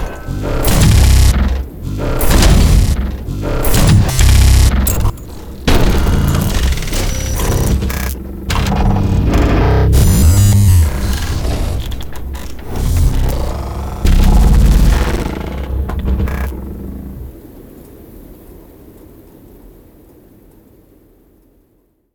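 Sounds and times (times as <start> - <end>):
assault mech robotic war unit sound effects: 0.0 - 17.3.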